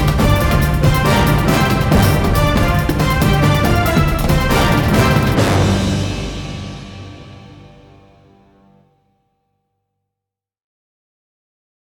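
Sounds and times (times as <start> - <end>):
marching tune: 0.0 - 8.8.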